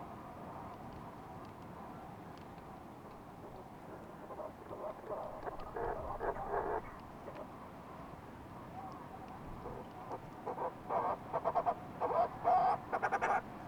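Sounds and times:
fulmar prions calling: 4.0s - 7.4s, 9.6s - 13.5s.

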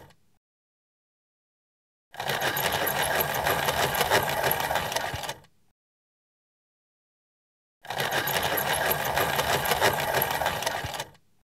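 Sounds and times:
desktop pencil sharpener: 2.2s - 5.4s, 7.8s - 11.2s.

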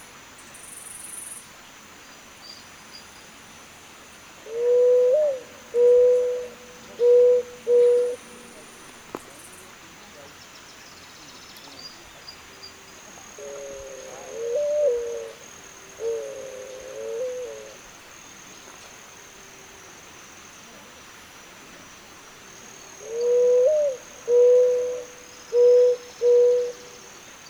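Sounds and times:
Zenaida dove giving low even coos: 4.4s - 8.2s, 13.4s - 15.4s, 16.0s - 17.8s, 23.0s - 27.0s.

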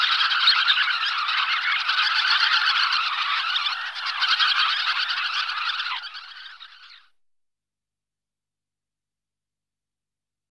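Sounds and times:
sandpipers chirping: 0.0s - 7.0s.

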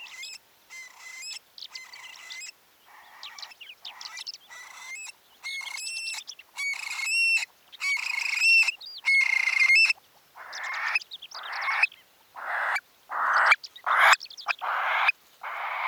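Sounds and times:
Eurasian stone-curlew calling: 0.0s - 15.8s.

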